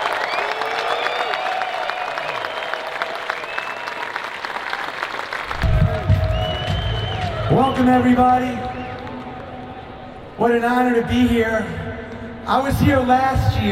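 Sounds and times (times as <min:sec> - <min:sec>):
audience at the VeeCon conference applauding and cheering: 0:00.0 - 0:10.4
speech: 0:07.8 - 0:08.7, 0:10.4 - 0:11.8, 0:12.5 - 0:13.6.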